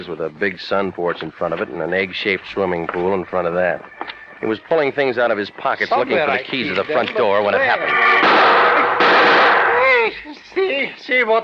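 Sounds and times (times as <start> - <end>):
speech: 0.0 - 8.4, 10.6 - 11.4
gunshots: 8.2 - 10.0.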